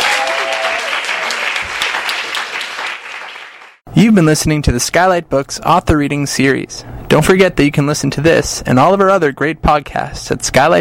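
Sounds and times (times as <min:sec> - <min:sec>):
audience round of applause: 0:00.0 - 0:03.8
speech: 0:04.0 - 0:10.7.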